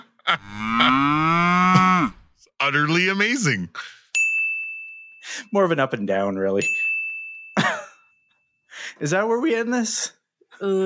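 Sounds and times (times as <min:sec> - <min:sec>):
speech: 0:00.3 - 0:00.7, 0:02.7 - 0:04.0, 0:05.2 - 0:06.9, 0:09.0 - 0:10.8
cow mooing: 0:00.4 - 0:02.2.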